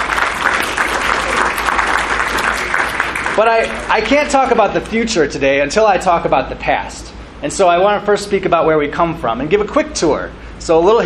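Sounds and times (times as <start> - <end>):
crowd applause: 0.0 - 4.2
speech: 3.4 - 11.0.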